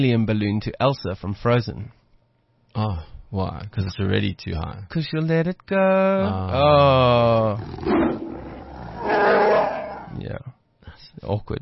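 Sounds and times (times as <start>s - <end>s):
speech: 0.0s - 2.0s, 2.8s - 8.2s, 9.0s - 10.5s, 11.2s - 11.6s
voice imitating a Wookiee roar: 6.9s - 10.2s.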